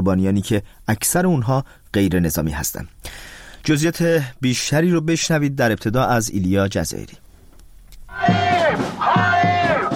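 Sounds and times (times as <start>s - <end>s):
speech: 0.0s - 7.2s
crowd of thousands demonstrating in Tel Aviv chanting and shouting: 8.1s - 9.9s.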